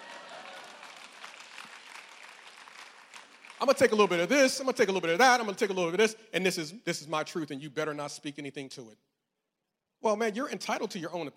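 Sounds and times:
hand clapping: 0.0s - 4.0s
speech: 3.6s - 9.1s, 10.0s - 11.3s.

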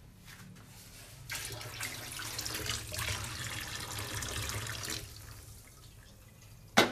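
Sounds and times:
hot frying oil poured through a strainer: 1.3s - 6.8s.

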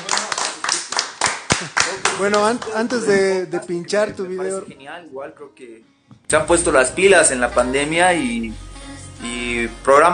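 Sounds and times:
hand clapping: 0.0s - 3.3s
speech: 1.6s - 10.1s.

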